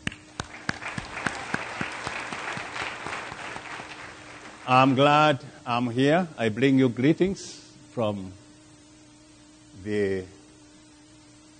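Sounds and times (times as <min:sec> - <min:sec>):
audience clapping hands: 0:00.0 - 0:05.1
speech: 0:04.7 - 0:08.4, 0:09.8 - 0:10.4.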